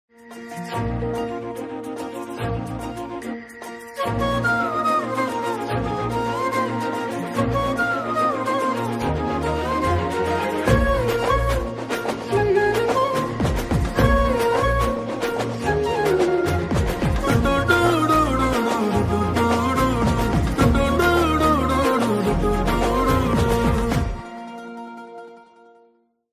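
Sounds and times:
Tamil love background music ringtone: 0.1s - 25.9s.

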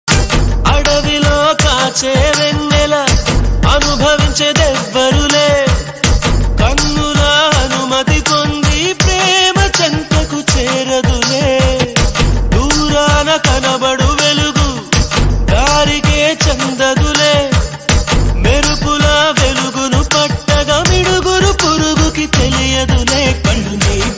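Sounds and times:
sad Telugu love song: 0.6s - 24.1s.

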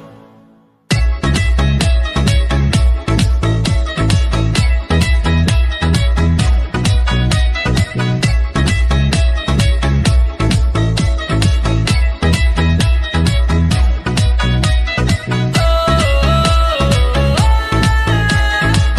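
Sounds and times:
instrumental remix ringtone: 0.9s - 18.9s.

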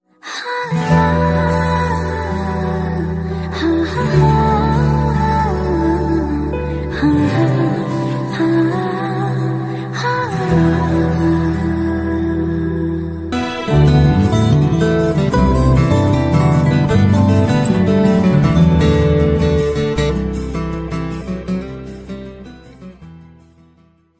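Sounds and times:
instrumental music: 0.5s - 24.1s.

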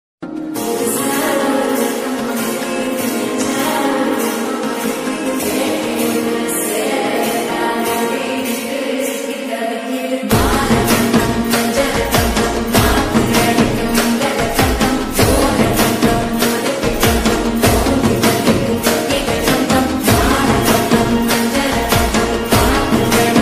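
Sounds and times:
Tamil ringtone: 0.2s - 9.0s, 10.3s - 23.4s.

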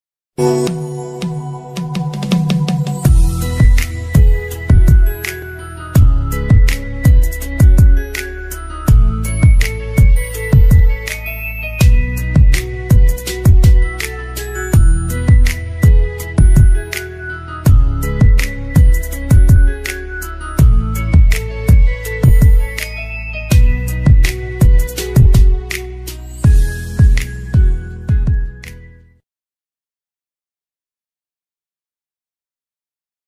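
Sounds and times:
instrumental ringtone: 0.4s - 29.1s.

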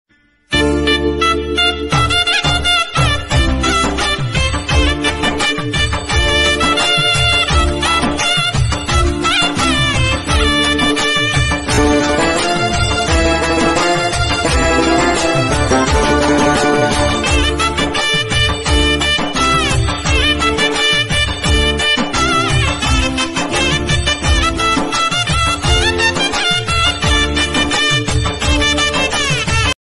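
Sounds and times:
background music ringtone: 0.2s - 29.8s.

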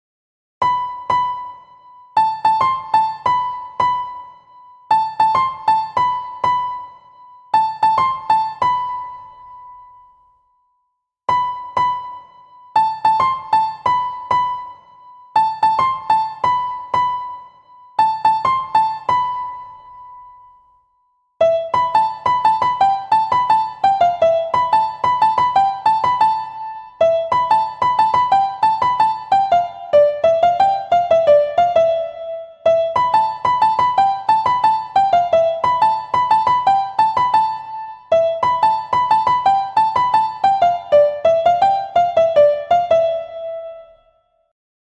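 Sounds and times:
easy piano theme music: 0.6s - 10.4s, 11.3s - 20.8s, 21.4s - 44.2s.

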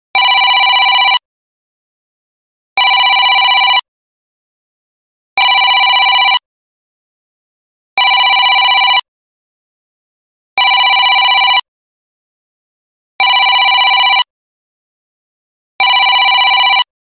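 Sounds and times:
80s phone ringtone: 0.2s - 1.2s, 2.8s - 3.9s, 5.4s - 6.5s, 8.0s - 9.1s, 10.6s - 11.7s, 13.2s - 14.3s, 15.8s - 16.9s.

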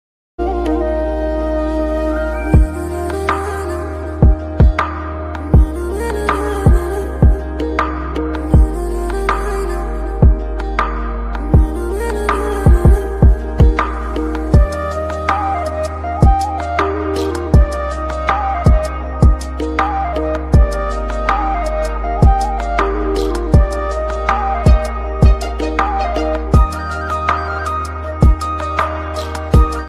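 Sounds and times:
Assamese background music ringtone: 0.4s - 29.8s.

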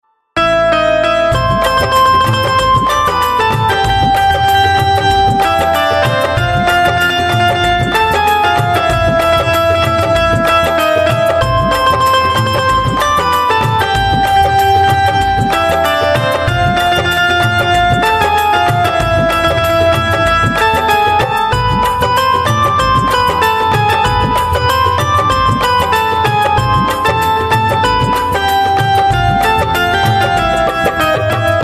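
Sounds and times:
patriotic ringtone music: 0.4s - 31.6s.

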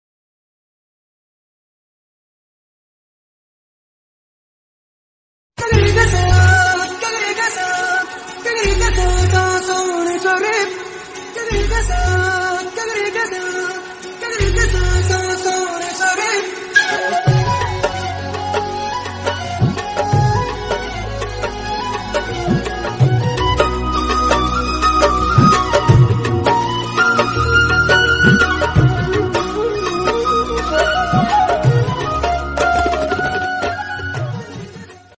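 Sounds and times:
romantic Tamil film background music ringtone: 5.6s - 35.1s.

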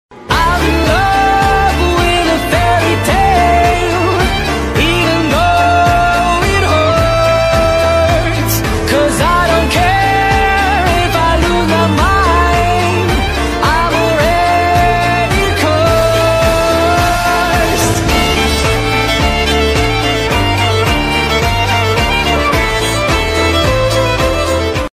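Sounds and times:
background music ringtone: 0.3s - 24.9s.

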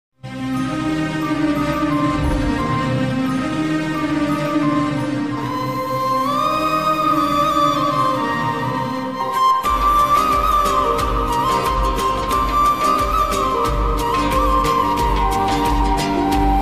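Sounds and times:
romantic Odia movie background music ringtone: 0.2s - 16.5s.

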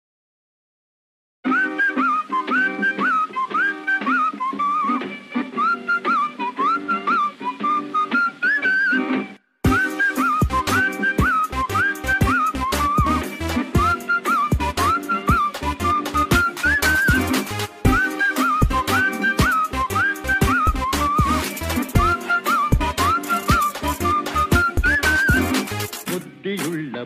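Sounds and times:
attitude background music ringtone: 1.5s - 26.8s.

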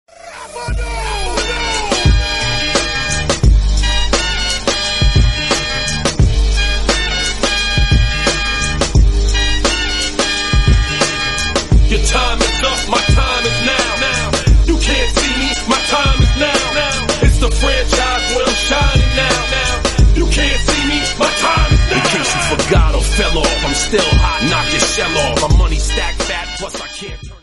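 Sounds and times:
entry music: 0.1s - 27.4s.

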